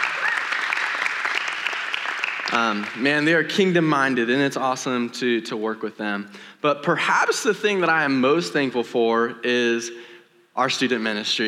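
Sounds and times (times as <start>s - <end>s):
audience applause: 0.0s - 3.0s
speech: 2.5s - 11.4s.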